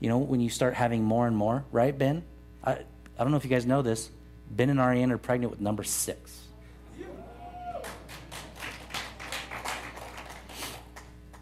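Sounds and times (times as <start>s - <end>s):
speech: 0.0s - 6.4s
audience clapping: 7.7s - 11.4s.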